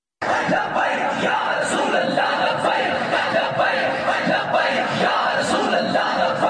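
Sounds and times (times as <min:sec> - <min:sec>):
large street crowd shouting and chanting in unison: 0:00.2 - 0:06.4.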